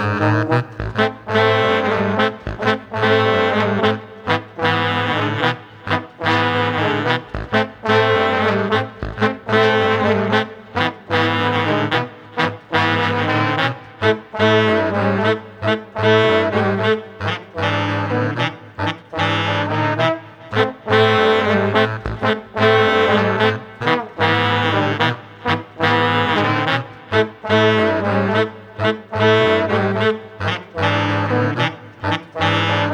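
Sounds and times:
swung funky brass music without drums: 0:00.0 - 0:32.9.

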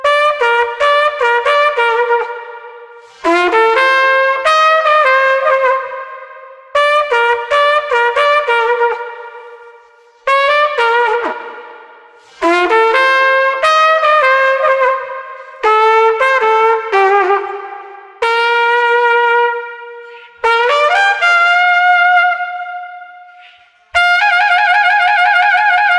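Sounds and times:
street trumpet: 0:00.0 - 0:25.9.

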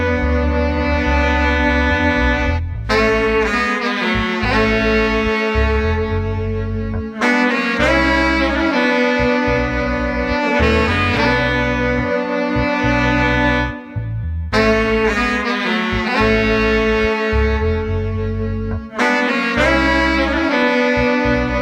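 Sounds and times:
laid-back street brass ensemble playing: 0:00.0 - 0:21.6.

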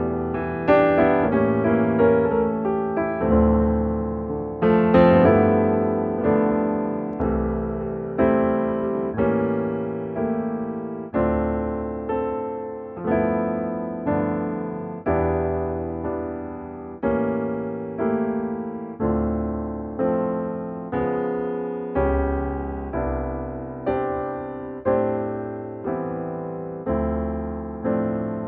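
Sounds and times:
cocktail piano music: 0:00.0 - 0:28.4.

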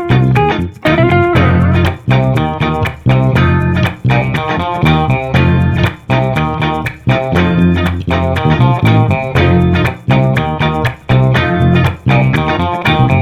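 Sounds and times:
funky street trio playing without keys: 0:00.0 - 0:13.2.

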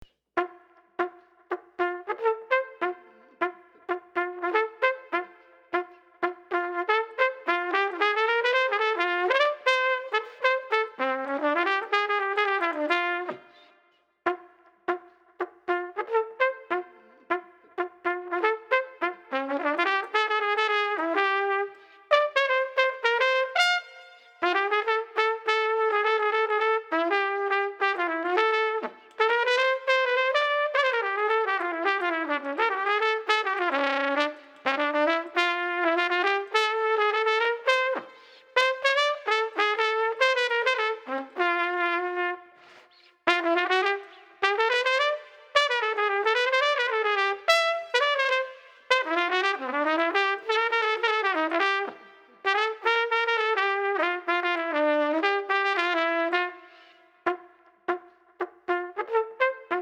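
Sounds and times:
funky bop street trumpet: 0:00.4 - 0:59.8.

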